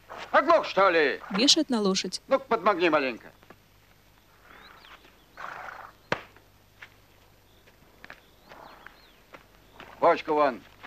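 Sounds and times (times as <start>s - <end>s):
speech: 0.4s - 3.4s, 10.1s - 10.7s
footsteps walking into a barn: 6.7s - 10.8s.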